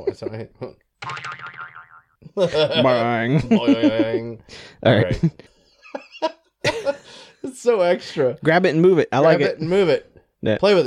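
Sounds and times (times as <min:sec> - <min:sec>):
speech: 0:00.0 - 0:01.4, 0:02.3 - 0:05.5, 0:06.2 - 0:10.8
voice making wobbly springy twang sound: 0:01.0 - 0:02.1.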